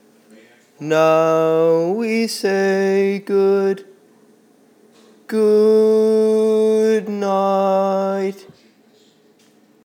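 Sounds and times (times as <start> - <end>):
baritone barbershop tags: 0.8 - 4.0, 5.3 - 8.6.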